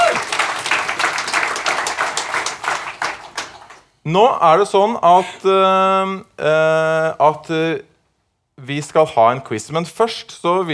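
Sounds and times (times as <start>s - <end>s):
audience applause: 0.0s - 3.9s
speech: 4.0s - 7.9s, 8.6s - 10.7s.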